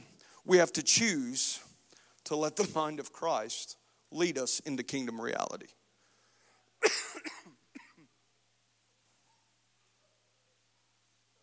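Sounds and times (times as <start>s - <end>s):
speech: 0.5s - 1.7s, 2.3s - 5.8s
man coughing after weeks of a lingering cough: 6.8s - 8.1s.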